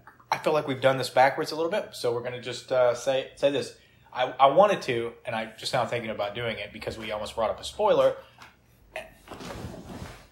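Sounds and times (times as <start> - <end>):
speech: 0.4 - 8.4
person shifting in a chair: 9.2 - 10.3.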